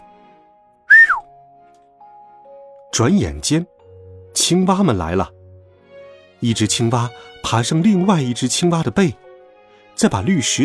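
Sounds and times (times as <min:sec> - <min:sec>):
person whistling to call frogs: 0:00.9 - 0:01.4
speech: 0:03.0 - 0:03.7, 0:04.4 - 0:05.4, 0:06.4 - 0:09.2, 0:10.0 - 0:10.6.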